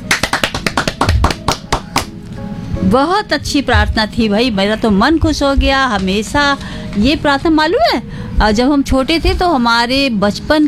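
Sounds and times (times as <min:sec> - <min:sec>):
children clapping after a prayer: 0:00.0 - 0:02.1
speech: 0:02.9 - 0:10.6.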